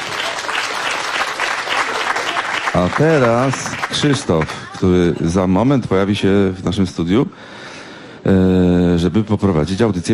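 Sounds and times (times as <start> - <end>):
audience applause in a radio studio: 0.0 - 4.8
speech: 2.8 - 10.1.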